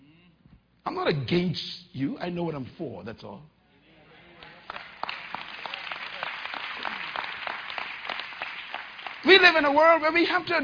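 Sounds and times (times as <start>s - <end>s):
speech: 0.9s - 3.5s, 9.4s - 10.6s
audience applause: 4.4s - 9.5s.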